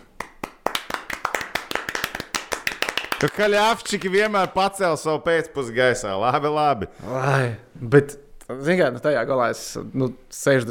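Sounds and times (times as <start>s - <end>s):
small round of applause: 0.0s - 4.6s
speech: 3.2s - 10.7s.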